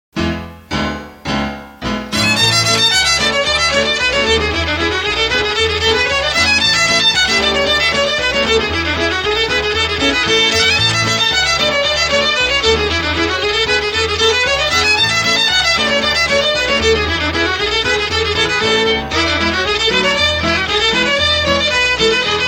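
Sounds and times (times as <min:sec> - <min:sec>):
instrumental music: 0:00.2 - 0:22.4.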